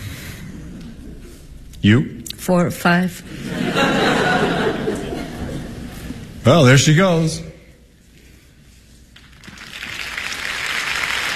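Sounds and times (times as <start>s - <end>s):
speech: 1.8s - 3.9s, 6.4s - 7.5s
laughter: 3.3s - 6.4s
theatre audience applauding an entrance: 9.2s - 11.3s.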